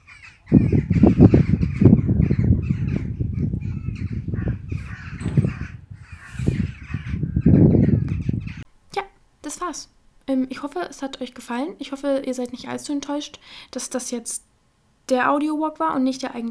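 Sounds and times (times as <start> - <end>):
birds calling at dawn: 0.0 - 8.7
speech: 9.7 - 14.5, 15.1 - 16.5.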